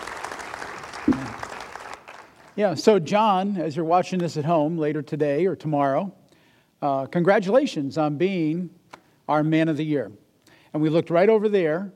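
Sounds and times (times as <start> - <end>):
round of applause: 0.0 - 2.6
speech: 1.1 - 1.5, 2.6 - 6.2, 6.8 - 11.9.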